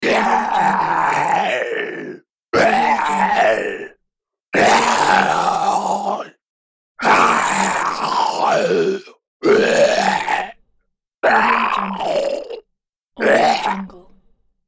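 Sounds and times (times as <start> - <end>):
zombie: 0.0 - 3.9, 4.6 - 6.4, 7.0 - 10.6, 11.2 - 12.6, 13.2 - 14.1.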